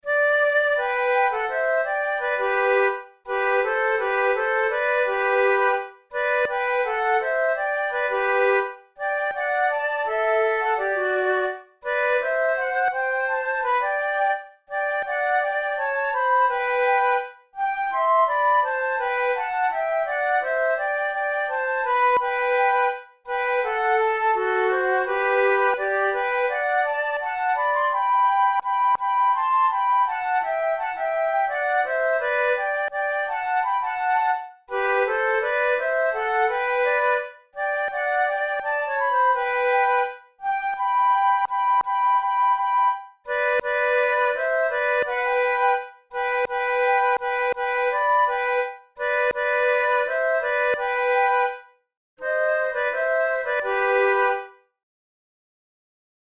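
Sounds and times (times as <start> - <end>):
flute duet: 0.0 - 54.7.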